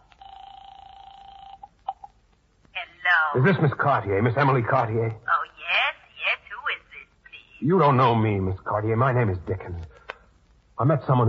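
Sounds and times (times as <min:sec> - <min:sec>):
telephone dial tone: 0:00.0 - 0:02.2
speech: 0:03.3 - 0:05.2, 0:07.6 - 0:10.0, 0:10.8 - 0:11.2.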